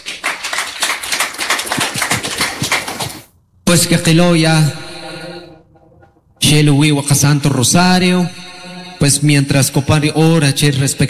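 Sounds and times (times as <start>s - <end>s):
loud applause: 0.0s - 3.3s
speech: 3.7s - 4.9s, 6.5s - 11.0s.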